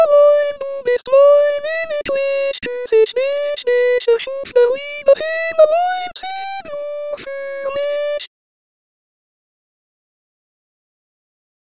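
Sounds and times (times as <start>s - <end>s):
soprano singing: 0.0s - 8.3s.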